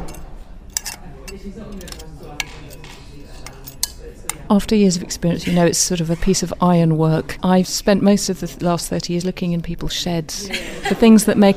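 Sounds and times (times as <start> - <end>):
old telephone parts clicking to mimic mending an alarm clock: 0.0 - 4.5
low murmur: 0.0 - 11.5
speech: 1.4 - 11.5
laughter: 5.2 - 6.2, 10.4 - 11.5.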